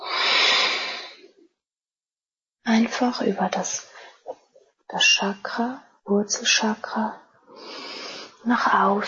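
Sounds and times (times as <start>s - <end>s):
slow deliberate exhale during chakra breathing exercise: 0.0s - 1.4s, 7.6s - 8.4s
speech: 2.8s - 3.9s, 4.9s - 7.8s, 8.4s - 9.0s.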